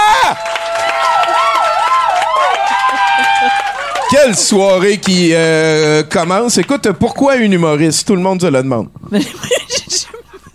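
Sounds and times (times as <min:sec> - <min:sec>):
audience applause: 0:00.0 - 0:06.9
laughter: 0:02.7 - 0:04.0, 0:09.2 - 0:10.5
speech: 0:04.1 - 0:10.2.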